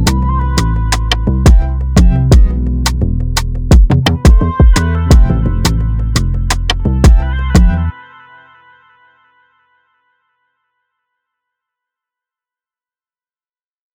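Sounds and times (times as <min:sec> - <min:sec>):
relaxing instrumental music in C major: 0:00.0 - 0:09.4.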